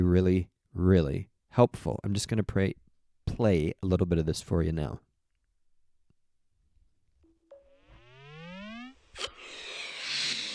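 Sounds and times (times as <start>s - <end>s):
speech: 0.0s - 2.8s, 3.4s - 5.1s, 9.2s - 9.7s
cartoon balloon inflating whistle tone: 7.4s - 10.5s.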